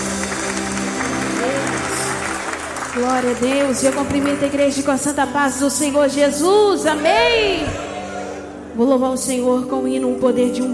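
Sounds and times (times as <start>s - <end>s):
audience clapping hands: 0.0s - 5.2s
speech: 3.0s - 7.8s, 8.8s - 10.7s.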